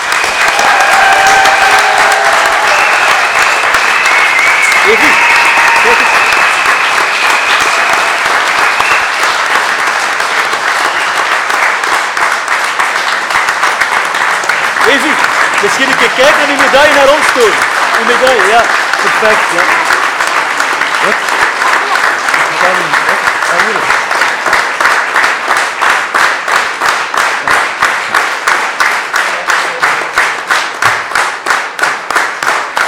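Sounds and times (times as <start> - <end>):
voices and cheers: 0.0 - 10.0, 14.8 - 23.9
audience applause: 0.0 - 32.8.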